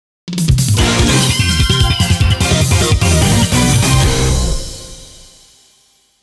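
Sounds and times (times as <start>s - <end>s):
victory screen game background music: 0.6s - 5.4s.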